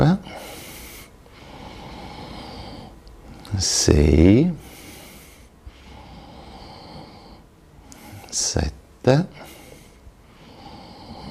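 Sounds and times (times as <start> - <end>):
breathing in and out during a slow counted breathing exercise: 0.2 - 3.5, 4.5 - 8.4, 9.4 - 11.2
speech: 3.5 - 4.6, 8.5 - 9.4.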